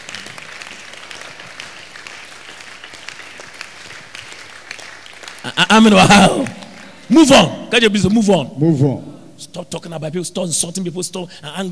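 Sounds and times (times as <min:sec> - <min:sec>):
audience clapping for the pastor: 0:00.0 - 0:08.1
speech: 0:05.4 - 0:11.7.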